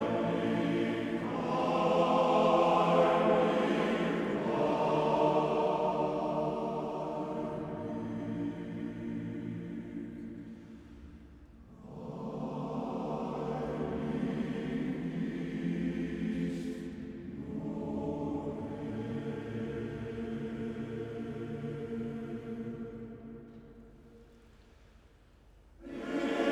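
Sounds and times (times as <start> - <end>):
male choir singing: 0.0 - 10.5, 11.8 - 23.5, 25.8 - 26.5.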